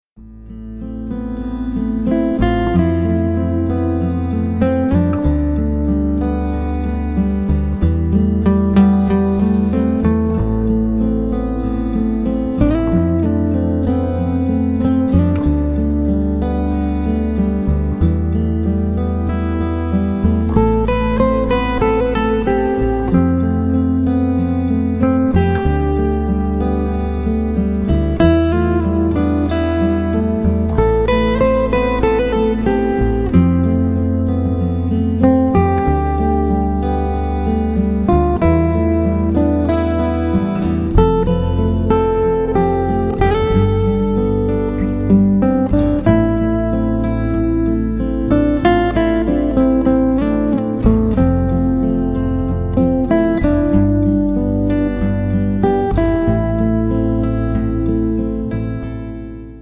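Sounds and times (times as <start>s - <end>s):
magical guitar music: 0.2s - 59.6s.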